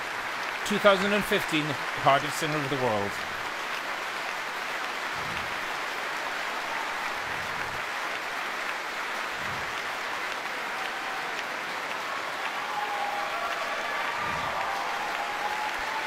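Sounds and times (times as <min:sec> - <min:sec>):
audience applause for the 2015 Cardiff Singer of the World winner: 0:00.0 - 0:16.0
speech: 0:00.7 - 0:03.4.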